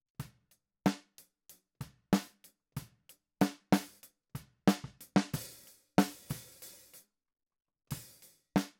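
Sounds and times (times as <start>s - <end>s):
snare drum: 3.4s - 4.0s, 4.7s - 6.6s.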